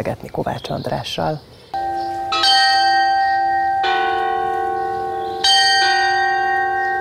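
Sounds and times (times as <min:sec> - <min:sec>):
speech: 0:00.0 - 0:01.5
clock tower chime play with bells: 0:01.8 - 0:07.0.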